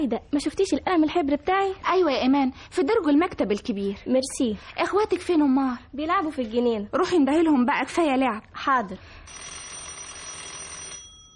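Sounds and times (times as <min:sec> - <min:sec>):
speech: 0:00.0 - 0:09.6
doorbell ringing: 0:09.3 - 0:11.3.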